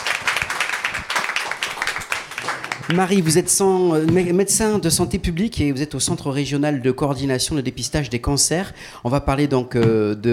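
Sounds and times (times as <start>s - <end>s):
audience applause: 0.0s - 3.4s
speech: 2.9s - 10.3s.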